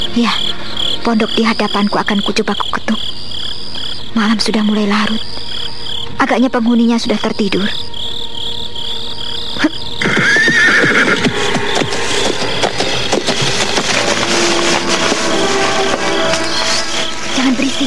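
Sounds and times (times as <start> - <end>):
steady shrill chorus of night insects: 0.0 - 17.8
speech: 0.2 - 3.1, 4.2 - 5.4, 6.2 - 7.8
horse whinnying at night: 10.0 - 11.4
low rustling: 10.8 - 17.8.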